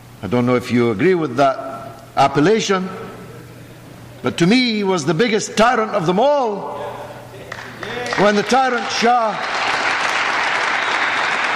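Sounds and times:
speech: 0:00.2 - 0:03.1, 0:04.2 - 0:07.0, 0:08.2 - 0:09.5
audience applause during a speech about nuclear energy: 0:07.5 - 0:11.5.

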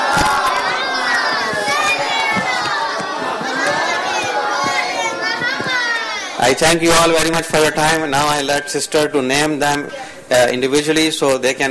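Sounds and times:
children shouting: 0:00.0 - 0:07.7
crowd at a community gathering reciting a loud salawat: 0:00.0 - 0:08.0
speech: 0:06.5 - 0:11.6.

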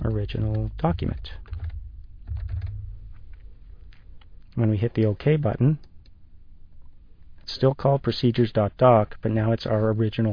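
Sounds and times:
typing on a computer keyboard: 0:00.0 - 0:02.8
low hum: 0:00.0 - 0:04.6
speech: 0:00.2 - 0:01.5, 0:04.6 - 0:05.9, 0:07.5 - 0:10.3.

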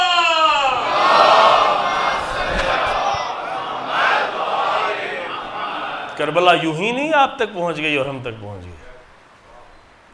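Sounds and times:
crowd at a religious gathering shouting response to takbir and slogans: 0:00.0 - 0:06.7
speech: 0:06.2 - 0:08.9.

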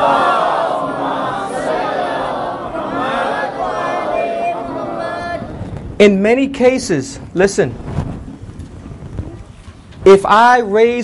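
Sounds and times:
crowd loudly reciting salawat: 0:00.0 - 0:05.8
speech: 0:06.0 - 0:08.0, 0:10.1 - 0:11.0.

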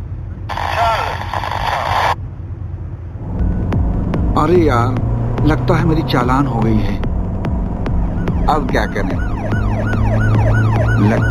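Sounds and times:
car engine roaring at dangerous speed on a Tehran highway: 0:00.0 - 0:11.2
steady low road rumble: 0:00.0 - 0:11.2
speech: 0:04.4 - 0:07.1, 0:08.5 - 0:09.3, 0:11.0 - 0:11.2.

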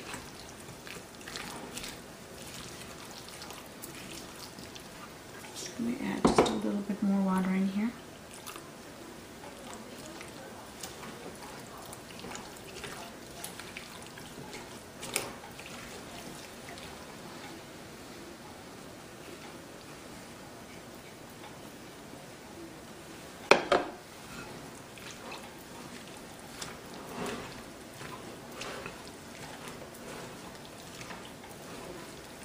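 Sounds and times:
batter being stirred with water in a bowl: 0:00.0 - 0:17.6, 0:23.5 - 0:32.4
utensil knocking on a bowl: 0:23.5 - 0:24.0.

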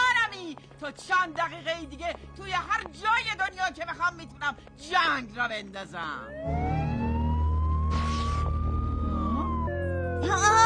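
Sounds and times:
speech: 0:00.8 - 0:06.8, 0:10.2 - 0:10.6
voice imitating a police siren: 0:07.8 - 0:10.6.

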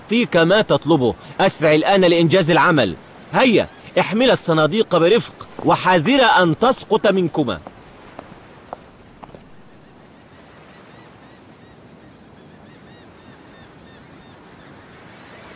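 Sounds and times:
waves washing in a harbour: 0:00.0 - 0:11.5, 0:12.9 - 0:15.5
speech: 0:00.1 - 0:07.7.

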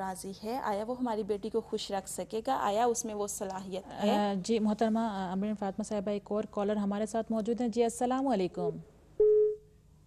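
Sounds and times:
speech: 0:00.0 - 0:08.9
phone line cutting off beep as a radio caller disconnects: 0:09.2 - 0:09.6.

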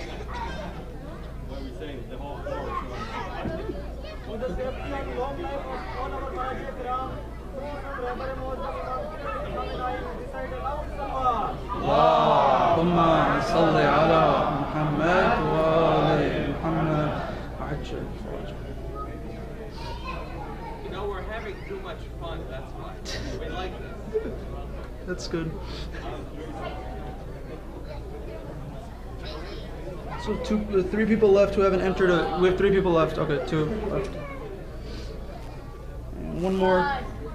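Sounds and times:
room full of people murmuring and chattering: 0:00.0 - 0:37.3
overlapping voices calling out answers: 0:11.5 - 0:17.6
speech: 0:21.4 - 0:26.8, 0:30.2 - 0:34.3.

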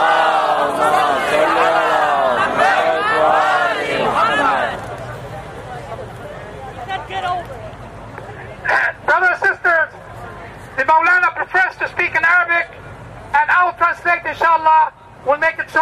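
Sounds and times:
congregation chanting salawat in unison to welcome a visiting shaykh: 0:00.0 - 0:04.8
murmur of voices: 0:00.0 - 0:15.7.

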